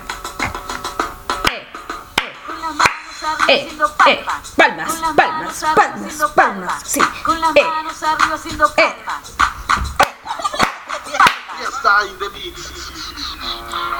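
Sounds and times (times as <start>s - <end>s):
person singing or talking melodically: 0.0s - 13.9s
hands clapping: 0.4s - 3.6s, 9.4s - 11.7s
laughter: 10.0s - 13.9s.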